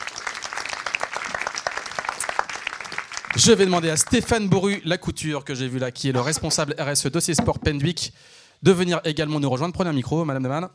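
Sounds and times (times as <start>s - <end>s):
audience applause: 0.0s - 4.0s
speech: 3.4s - 10.7s.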